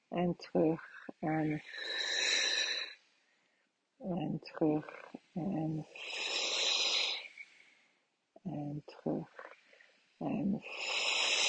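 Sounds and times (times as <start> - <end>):
speech: 0.1 - 2.2, 4.0 - 6.3, 8.4 - 9.5, 10.2 - 11.0
calm in-breath during a breathing exercise: 0.8 - 3.7, 5.9 - 8.0, 9.4 - 10.0, 10.6 - 11.4.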